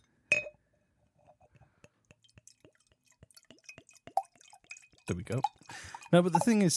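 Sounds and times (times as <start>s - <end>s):
glass clink: 0.3s - 0.6s, 4.7s - 6.6s
water pouring into a glass: 2.1s - 6.7s
speech: 5.1s - 6.7s.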